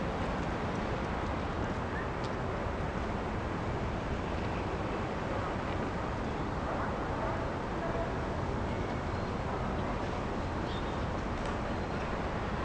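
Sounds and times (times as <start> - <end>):
town ambience: 0.0 - 12.6.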